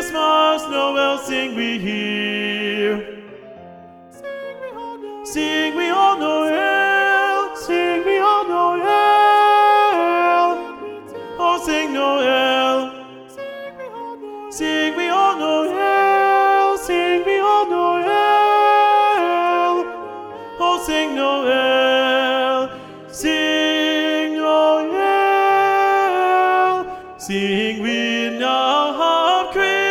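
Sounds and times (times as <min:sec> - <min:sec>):
alto voice singing a Christmas carol for SSA choir: 0:00.0 - 0:29.8.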